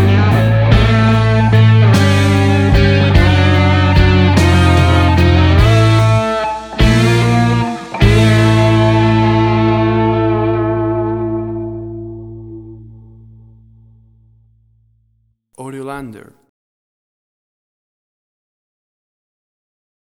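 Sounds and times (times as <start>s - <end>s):
blues music in a bar: 0.0s - 15.0s.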